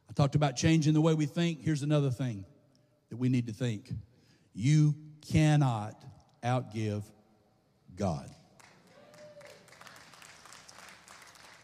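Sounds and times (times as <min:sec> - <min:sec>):
speech: 0:00.2 - 0:02.5, 0:03.1 - 0:07.2, 0:08.0 - 0:08.4
sparse applause: 0:08.6 - 0:11.6.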